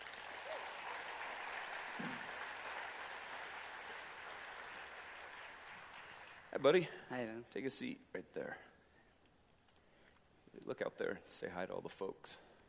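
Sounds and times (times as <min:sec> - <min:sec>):
audience applause welcoming a young boy onto a stage: 0:00.0 - 0:06.9
speech: 0:06.6 - 0:08.7, 0:10.6 - 0:12.5.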